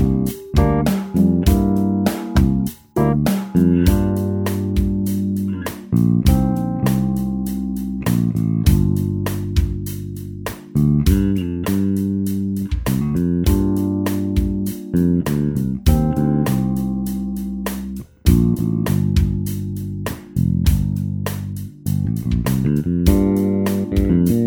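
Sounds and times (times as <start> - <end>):
bass riff: 0.0 - 24.4.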